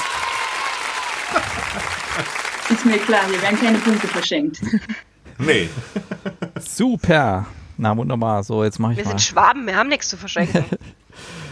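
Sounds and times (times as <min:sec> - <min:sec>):
applause for a quiz winner: 0:00.0 - 0:04.3
laughter: 0:00.8 - 0:06.7, 0:10.2 - 0:11.0
speech: 0:02.8 - 0:06.1, 0:06.8 - 0:11.5.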